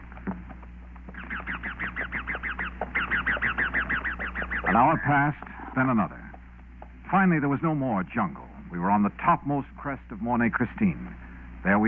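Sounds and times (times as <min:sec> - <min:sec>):
wild parrots screeching overhead: 0:01.1 - 0:05.3
speech: 0:04.7 - 0:06.2, 0:07.1 - 0:11.8.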